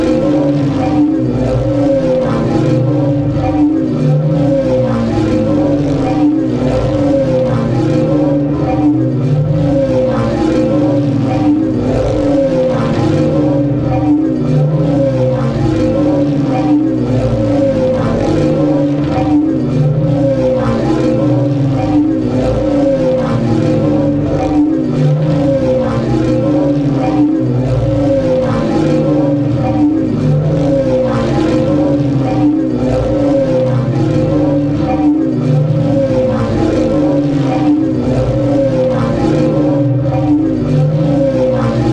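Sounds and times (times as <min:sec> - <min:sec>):
drone with erratic growls: 0:00.0 - 0:41.9.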